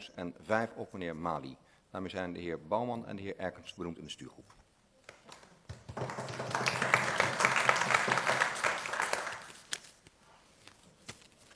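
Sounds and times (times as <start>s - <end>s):
speech: 0.1s - 4.6s, 6.0s - 6.7s
applause: 5.7s - 9.7s.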